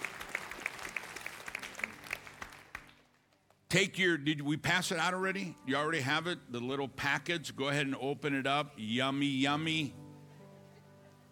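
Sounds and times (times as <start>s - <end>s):
group clapping: 0.0s - 3.7s
speech: 3.7s - 10.0s.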